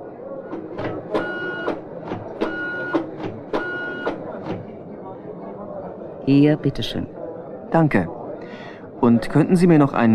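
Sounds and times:
printer printing out a list sorted by country: 0.5s - 4.8s
speech: 6.3s - 8.2s, 9.0s - 10.1s.

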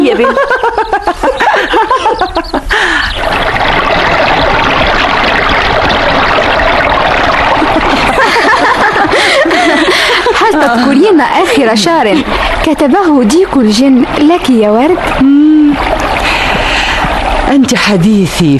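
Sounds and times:
voices and laughter: 0.0s - 3.1s, 7.6s - 12.7s
speech: 0.2s - 0.6s, 10.6s - 16.0s, 17.5s - 18.5s
river water splashing in a radio drama scene: 3.0s - 18.2s.

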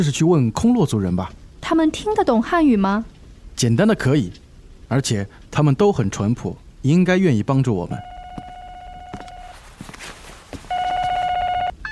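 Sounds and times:
speech: 0.0s - 8.1s
telephone ringing: 8.0s - 9.6s, 10.7s - 11.9s.

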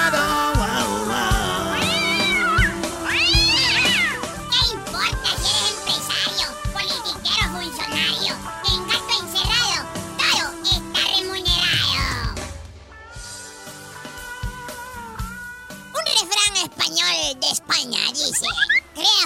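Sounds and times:
busy background of music-like sound: 0.0s - 19.2s
cat meowing: 1.7s - 4.4s.

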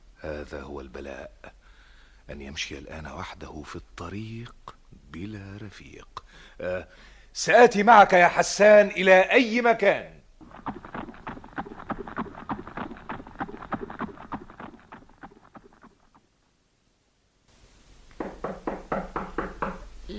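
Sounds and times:
speech: 0.2s - 1.6s, 2.3s - 10.8s
knocking on a door: 18.2s - 19.9s.

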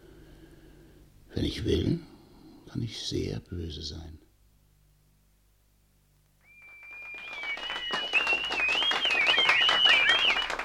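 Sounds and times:
speech: 1.4s - 2.1s, 2.7s - 4.2s
theatre audience in Rouen whistling shrilly at a tragedy: 6.4s - 10.6s
scattered clapping: 6.5s - 10.6s.

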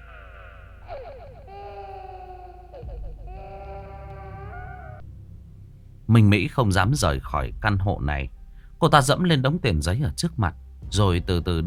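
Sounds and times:
baby crying behind a wall: 0.0s - 5.1s
speech: 6.1s - 11.6s.

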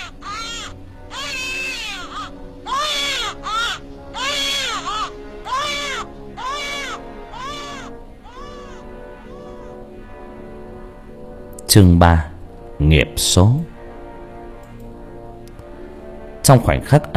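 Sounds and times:
newborn baby crying: 0.0s - 9.9s
speech: 11.7s - 13.7s, 16.5s - 17.1s.

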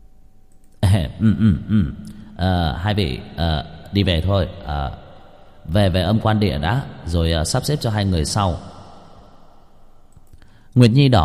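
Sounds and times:
person clearing throat: 0.8s - 2.2s
speech: 1.0s - 5.0s, 5.6s - 8.7s, 10.8s - 11.2s.

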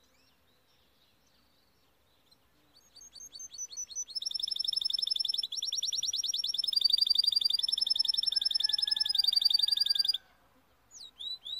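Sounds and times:
canary singing: 2.8s - 10.2s.

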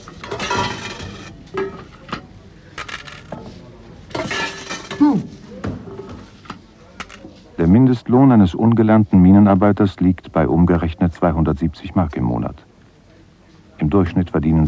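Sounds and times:
coins tossed onto a tin plate: 0.1s - 1.3s, 2.8s - 3.4s
speech: 7.6s - 12.7s, 13.8s - 14.6s.

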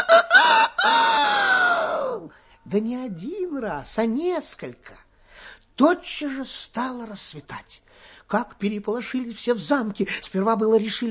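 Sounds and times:
rooster crowing: 0.0s - 2.1s
speech: 2.7s - 11.0s.

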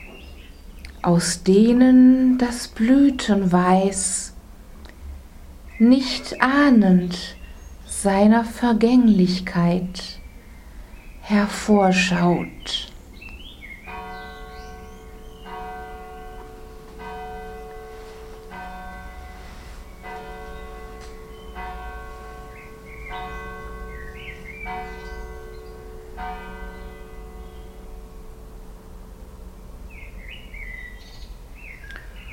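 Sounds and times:
birds chirping and twittering: 0.0s - 28.9s, 29.9s - 32.3s
low hum: 0.2s - 32.3s
speech: 1.0s - 4.3s, 5.8s - 7.4s, 8.0s - 10.2s, 11.3s - 12.9s
singing bowl struck and ringing: 14.0s - 31.1s.

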